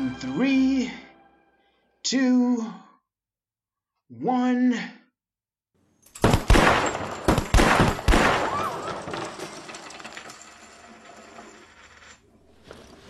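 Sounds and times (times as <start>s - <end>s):
speech: 0.2s - 1.0s, 2.1s - 2.8s, 4.1s - 5.0s
gunfire from shooters in a shootout: 6.2s - 9.1s.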